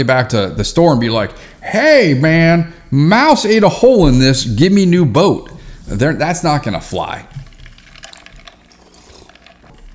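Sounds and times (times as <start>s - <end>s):
speech: 0.0s - 7.4s
sipping an iced tea lemonade drink: 7.3s - 9.9s.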